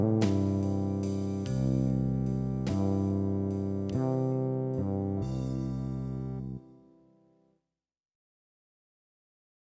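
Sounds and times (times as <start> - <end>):
cross-hand piano arpeggios: 0.0 - 6.7.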